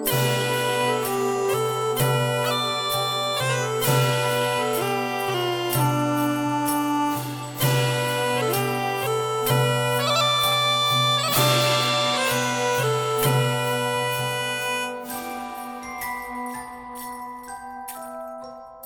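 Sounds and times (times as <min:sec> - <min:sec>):
fanfare: 0:00.1 - 0:16.7.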